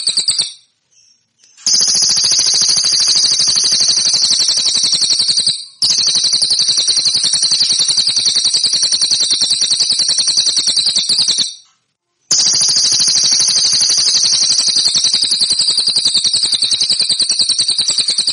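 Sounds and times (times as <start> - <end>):
cililin song metallic trill: 0.0 - 11.7, 12.3 - 18.3.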